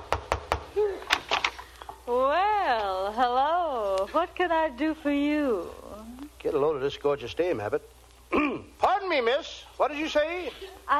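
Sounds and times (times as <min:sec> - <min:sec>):
knocking on a door: 0:00.0 - 0:00.6
speech: 0:02.1 - 0:05.8, 0:06.4 - 0:10.9.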